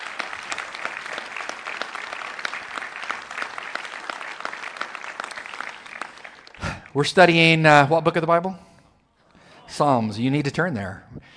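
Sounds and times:
audience applause: 0.0 - 7.4
speech: 6.9 - 8.6, 9.8 - 11.1.

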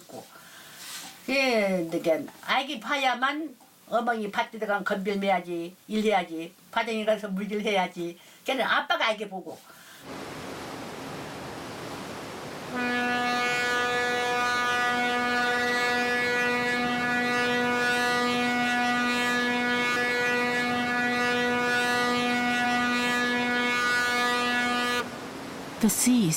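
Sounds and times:
speech: 1.3 - 10.2, 12.7 - 13.1, 25.8 - 26.3
boat horn blast: 12.7 - 25.1.

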